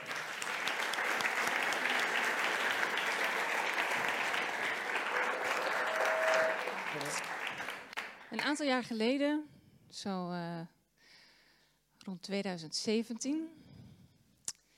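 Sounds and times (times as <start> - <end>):
audience applause: 0.0 - 8.6
speech: 8.4 - 10.8, 12.1 - 13.6.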